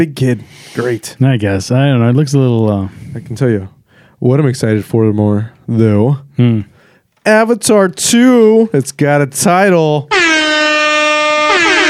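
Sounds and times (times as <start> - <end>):
speech: 0.0 - 10.3
air horn sound effect: 10.1 - 11.8.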